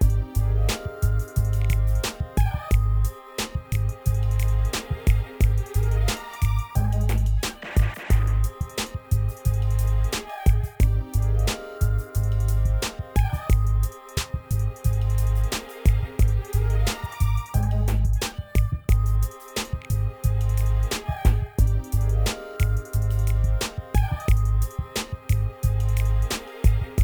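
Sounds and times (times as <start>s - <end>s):
89 bpm aqua abstract hip hop beat: 0.0s - 27.0s.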